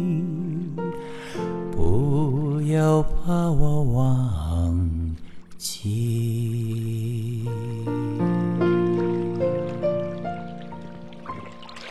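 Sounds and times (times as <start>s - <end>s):
gentle male voice singing a soft cover of a love song from Thailand: 0.0s - 10.0s
simple, clean piano: 0.0s - 11.8s
speech: 2.7s - 4.8s, 5.6s - 6.8s
babbling, trickling water: 3.8s - 11.8s.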